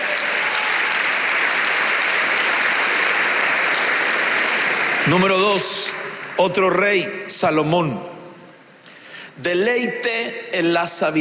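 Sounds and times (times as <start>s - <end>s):
audience applauding: 0.0s - 6.8s
speech: 5.1s - 8.1s, 9.4s - 11.1s.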